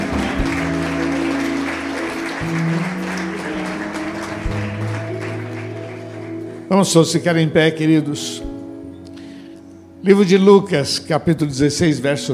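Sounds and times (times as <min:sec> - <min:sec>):
audience applause: 0:00.0 - 0:06.7
low organ or keyboard tones: 0:00.0 - 0:12.3
speech: 0:06.7 - 0:08.6, 0:10.0 - 0:12.3.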